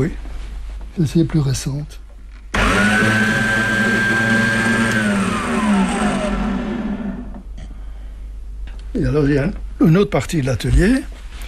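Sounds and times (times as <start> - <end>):
speech: 0.0 - 0.2, 1.0 - 2.0, 9.0 - 11.2
circular saw running: 2.6 - 7.4.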